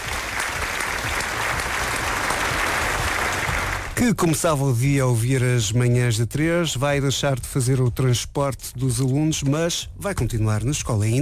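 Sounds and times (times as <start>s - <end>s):
applause: 0.0s - 4.0s
speech: 4.0s - 11.1s.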